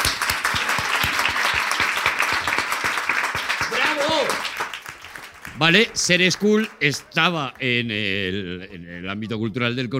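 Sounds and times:
audience applause: 0.0 - 7.9
speech: 5.6 - 9.9.

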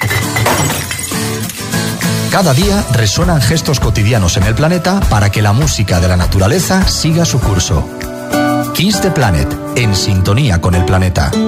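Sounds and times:
glass bottles being dropped for recycling: 0.0 - 2.8
speech: 2.4 - 11.4.

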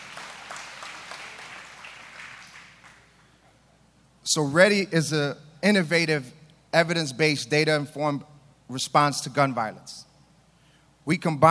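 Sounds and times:
audience applause: 0.0 - 3.0
speech: 4.2 - 10.1, 11.1 - 11.5.

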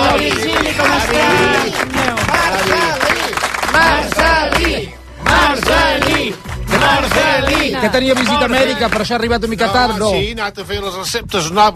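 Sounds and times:
applause: 0.0 - 9.2
speech: 7.8 - 11.7.

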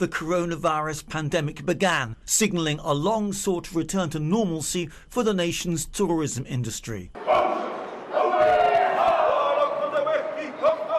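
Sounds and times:
speech: 0.0 - 7.4
Maori welcoming ceremony chanting as a cruise ship docks in Auckland: 7.2 - 10.9.

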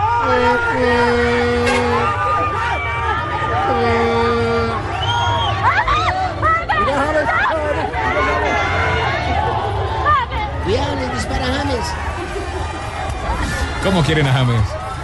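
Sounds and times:
crowd of football fans cheering, whooping and shouting: 0.0 - 15.0
sustained horn-like tones: 0.2 - 5.5
laughter: 0.3 - 9.9, 11.6 - 15.0
speech: 14.0 - 14.8.

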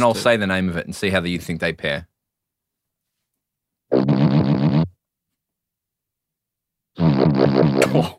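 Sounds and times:
speech: 0.0 - 2.1, 7.4 - 8.1
buzzy low-pitched cartoon fart sound effect: 3.9 - 5.0, 7.0 - 8.1.

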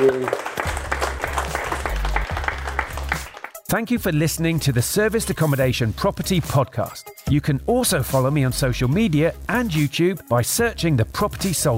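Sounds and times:
audience applause: 0.0 - 3.6
speech: 3.7 - 11.7.

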